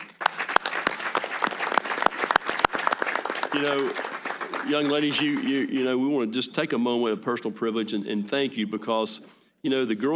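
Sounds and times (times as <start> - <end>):
group applauding: 0.0 - 6.2
speech: 3.6 - 4.0, 4.6 - 10.1.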